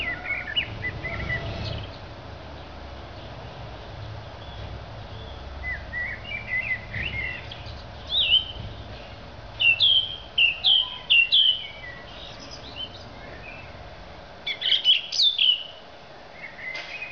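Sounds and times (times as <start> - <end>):
thrush song of clear whistled phrases and chirps: 0.0 - 2.0, 4.4 - 8.6, 9.6 - 13.7, 14.4 - 15.8, 16.4 - 17.0.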